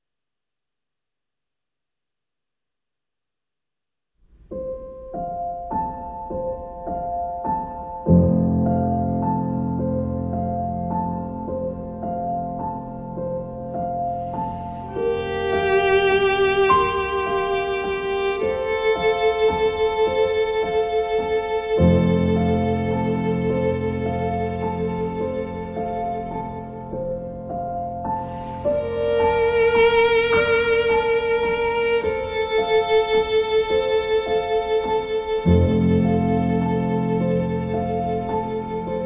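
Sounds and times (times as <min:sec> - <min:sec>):
piano: 0:04.2 - 0:39.0.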